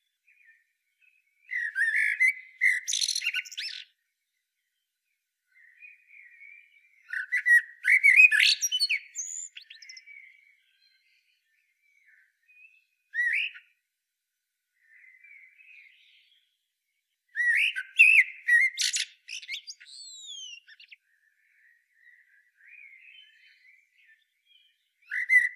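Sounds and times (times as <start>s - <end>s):
Common blackbird song: 0.0s - 25.5s.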